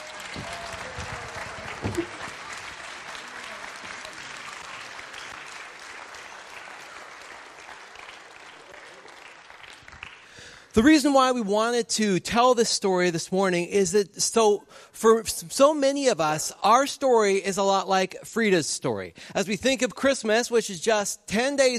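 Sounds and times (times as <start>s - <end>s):
audience applause: 0.0s - 10.6s
speech: 10.8s - 21.7s.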